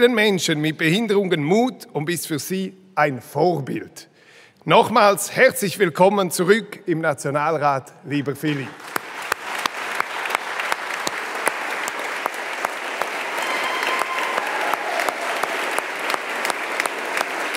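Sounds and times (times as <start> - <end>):
speech: 0.0 - 9.0
Swiss National Council applauding in its chamber: 8.2 - 17.5.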